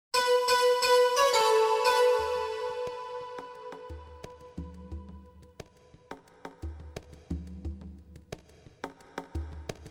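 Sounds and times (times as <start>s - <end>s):
trance music: 0.2s - 4.3s.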